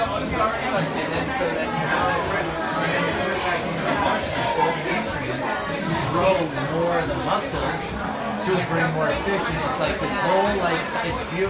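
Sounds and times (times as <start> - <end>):
crowd filing in during the pre-show: 0.0 - 11.4
speech: 9.4 - 11.4.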